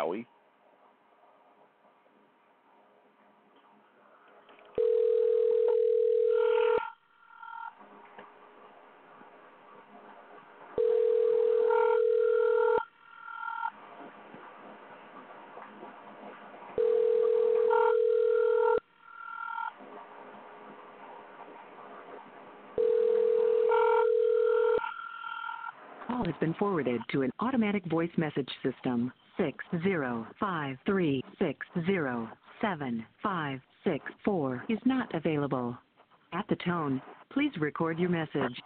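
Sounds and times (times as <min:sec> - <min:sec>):
telephone ringback from an outgoing call: 0:04.8 - 0:07.8, 0:10.8 - 0:13.8, 0:16.8 - 0:19.7, 0:22.8 - 0:25.7
speech: 0:26.4 - 0:38.6.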